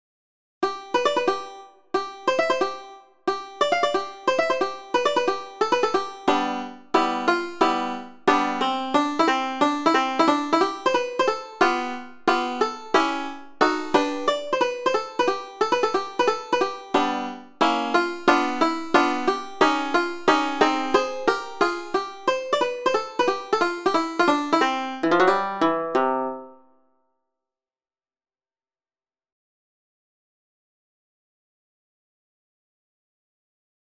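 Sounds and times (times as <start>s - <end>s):
banjo: 0.6s - 26.7s.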